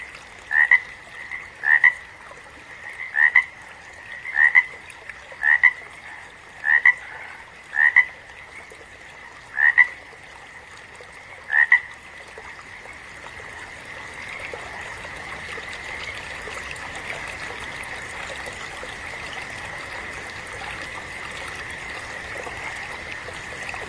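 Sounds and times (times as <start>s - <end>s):
frog double-pulsed croaks: 0.4s - 8.6s, 9.2s - 10.2s, 11.1s - 23.8s.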